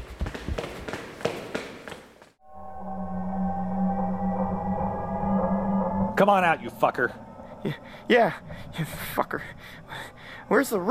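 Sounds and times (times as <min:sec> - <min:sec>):
video game footsteps running down stairs: 0:00.0 - 0:02.4
humming drone: 0:02.4 - 0:10.8
speech: 0:06.2 - 0:10.8.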